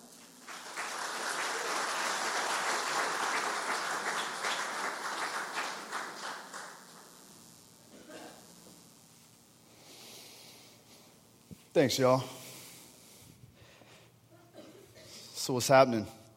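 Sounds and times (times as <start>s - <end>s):
audience applause welcoming a speaker to the podium at a morning gathering: 0.0s - 7.1s
speech: 11.8s - 12.4s, 15.5s - 16.2s.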